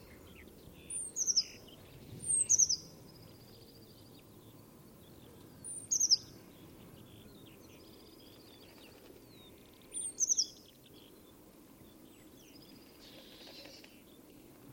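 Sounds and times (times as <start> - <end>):
bird chirping: 0.0 - 14.5.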